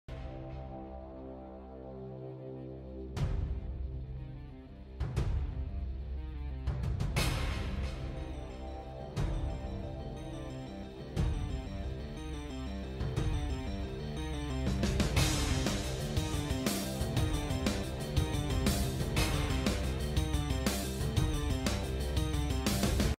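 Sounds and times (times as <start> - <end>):
battle dialogue theme music: 0.1 - 23.1.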